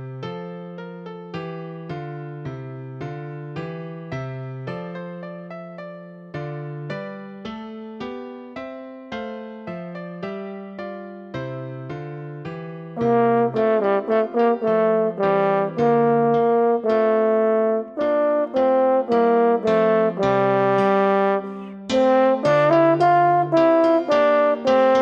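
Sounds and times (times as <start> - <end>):
piano accompaniment: 0.0 - 25.0
horn march solo: 13.0 - 25.0.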